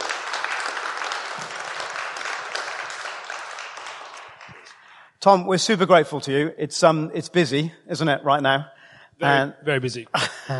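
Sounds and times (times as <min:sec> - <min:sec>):
congregation at Burlington Baptist Church applauding: 0:00.0 - 0:05.0
speech: 0:05.2 - 0:10.5.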